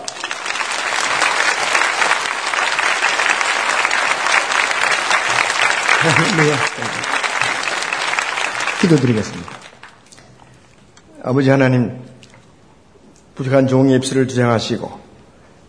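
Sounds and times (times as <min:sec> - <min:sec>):
audience applause welcoming a speaker: 0:00.0 - 0:10.1
laughter: 0:05.8 - 0:07.8
speech: 0:06.1 - 0:07.1, 0:08.8 - 0:09.6, 0:11.2 - 0:12.1, 0:13.4 - 0:15.0.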